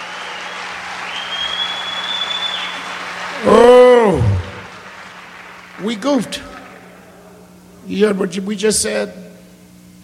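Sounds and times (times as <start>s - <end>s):
audience applause: 0.0s - 7.1s
speech: 5.8s - 6.5s, 7.9s - 9.3s.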